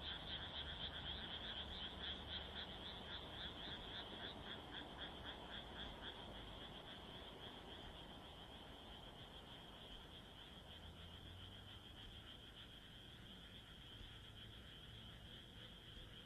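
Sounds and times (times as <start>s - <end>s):
frogs croaking in a chorus: 0.0s - 16.2s
soft background hiss: 0.0s - 16.2s.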